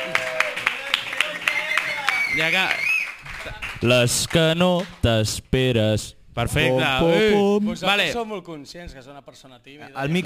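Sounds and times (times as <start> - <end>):
crowd applause: 0.0 - 4.3
speech: 2.4 - 10.2.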